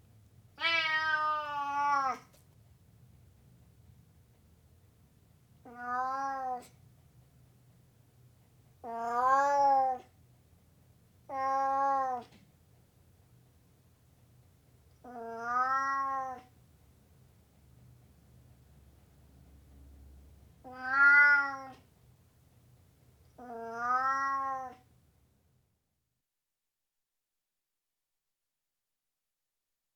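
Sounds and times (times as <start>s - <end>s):
Burmese cat meowing: 0.6s - 2.4s, 5.6s - 6.8s, 8.8s - 10.1s, 11.3s - 12.4s, 15.0s - 16.5s, 20.6s - 21.9s, 23.4s - 24.9s.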